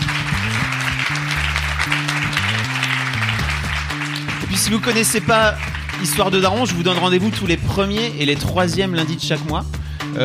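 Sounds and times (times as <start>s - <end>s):
audience applause: 0.0s - 7.0s
low stepping musical bass line: 0.0s - 10.2s
speech: 4.6s - 10.2s.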